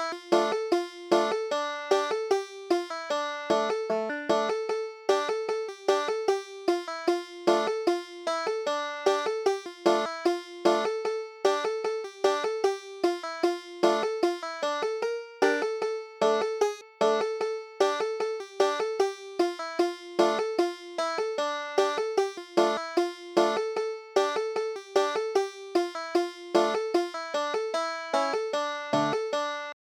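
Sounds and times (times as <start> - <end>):
banjo playing a nigun: 0.0 - 29.8.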